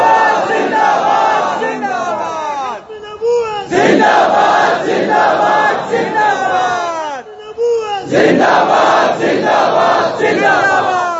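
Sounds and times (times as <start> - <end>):
crowd chanting a religious slogan at a rally: 0.0 - 2.9, 3.6 - 7.2, 8.0 - 11.1.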